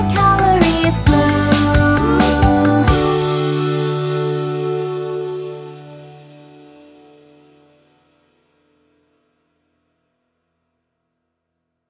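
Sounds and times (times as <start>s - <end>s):
person singing: 0.0s - 6.5s.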